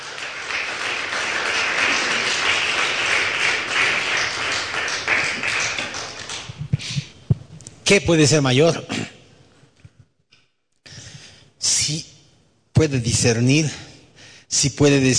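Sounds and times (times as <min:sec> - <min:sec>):
audience applause: 0:00.0 - 0:06.6
speech: 0:07.9 - 0:09.0, 0:12.8 - 0:13.9, 0:14.5 - 0:15.1.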